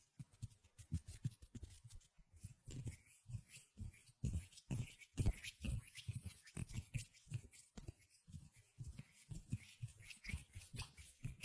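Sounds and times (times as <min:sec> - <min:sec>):
hands rubbing, patting and brushing: 0:00.0 - 0:11.4.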